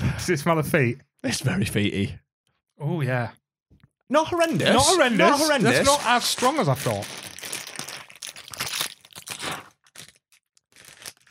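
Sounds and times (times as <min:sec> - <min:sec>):
speech: 0:00.3 - 0:02.2, 0:02.8 - 0:03.4, 0:04.1 - 0:07.3
bag of chips being ripped open: 0:05.7 - 0:11.2.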